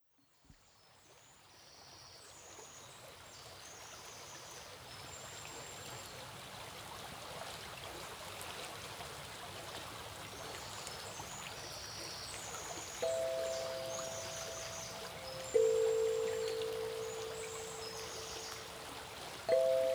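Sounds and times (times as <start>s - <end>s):
sansula playing: 13.0s - 18.8s, 19.5s - 19.9s
river flowing: 13.0s - 19.9s.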